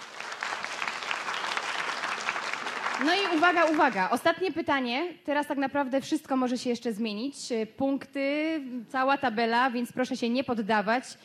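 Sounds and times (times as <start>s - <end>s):
audience applause at a film festival event: 0.0s - 4.1s
speech: 3.0s - 11.2s.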